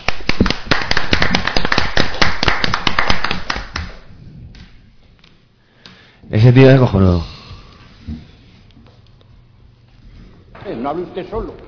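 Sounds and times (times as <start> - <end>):
applause: 0.0 - 4.0
speech: 6.5 - 7.3, 10.9 - 11.6.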